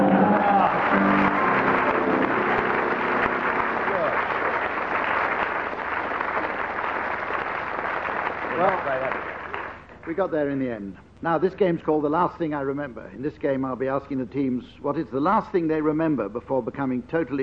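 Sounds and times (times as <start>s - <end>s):
vocal whoop: 0.0s - 1.8s
audience applause: 0.0s - 10.2s
speech: 10.2s - 17.4s.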